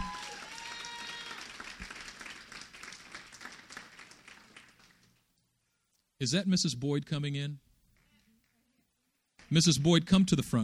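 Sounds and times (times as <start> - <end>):
audience hand clapping: 0.0 - 5.3, 9.3 - 10.0
speech: 6.2 - 7.7, 9.5 - 10.6.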